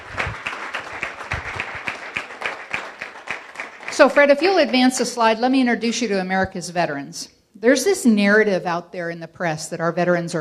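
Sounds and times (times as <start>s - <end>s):
audience applause: 0.0s - 4.8s
speech: 4.0s - 10.3s.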